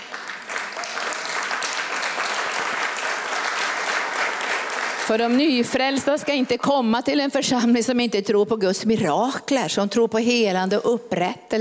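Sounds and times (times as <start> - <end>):
audience applause: 0.0 - 6.7
speech: 5.1 - 11.5.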